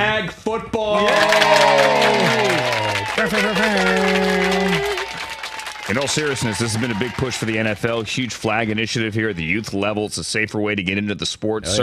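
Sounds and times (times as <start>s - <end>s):
speech: 0.0s - 2.6s, 5.9s - 11.8s
applause: 1.0s - 9.8s.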